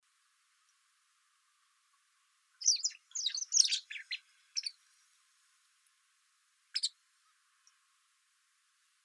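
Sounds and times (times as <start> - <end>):
white wagtail calls: 2.6 - 4.8, 6.7 - 7.0.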